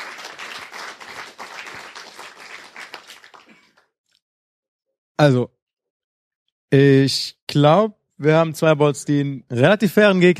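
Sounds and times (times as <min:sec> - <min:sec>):
crowd applauding: 0:00.0 - 0:03.9
speech: 0:05.2 - 0:05.6, 0:06.7 - 0:10.3.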